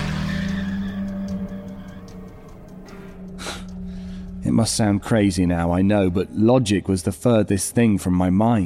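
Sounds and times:
car speeding off: 0.0s - 3.2s
speech: 4.4s - 8.6s.

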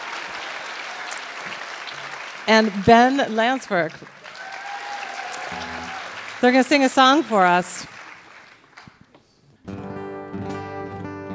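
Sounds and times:
audience applause: 0.0s - 9.0s
speech: 2.5s - 4.2s, 6.4s - 8.0s.

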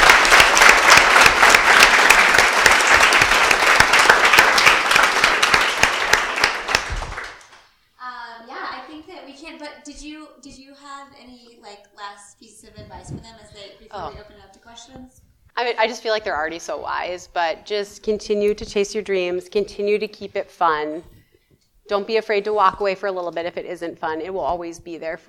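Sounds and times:
audience applause: 0.0s - 7.6s
speech: 14.0s - 21.1s, 21.9s - 25.2s.

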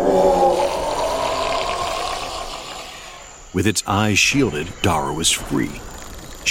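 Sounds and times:
creature howling in pain: 0.0s - 3.4s
speech: 3.6s - 6.4s.

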